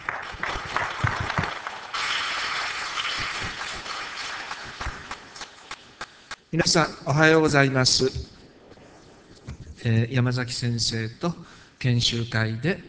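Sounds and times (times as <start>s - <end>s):
audience applause welcoming speaker: 0.0s - 6.2s
speech: 6.5s - 8.3s, 9.8s - 12.8s.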